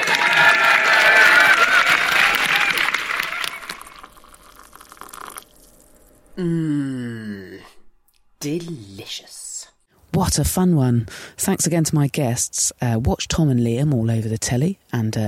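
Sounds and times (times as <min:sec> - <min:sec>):
audience clapping: 0:00.0 - 0:04.4
speech: 0:06.4 - 0:06.7, 0:08.4 - 0:09.4, 0:10.1 - 0:15.2.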